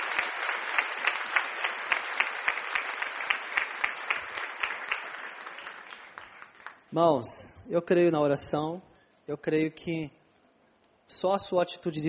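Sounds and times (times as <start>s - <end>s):
audience applauding loudly: 0.0s - 6.8s
speech: 6.9s - 10.2s, 11.1s - 12.0s.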